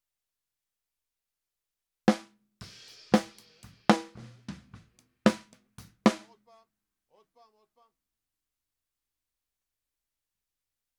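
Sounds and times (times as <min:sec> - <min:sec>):
snare drum: 0:02.1 - 0:06.4.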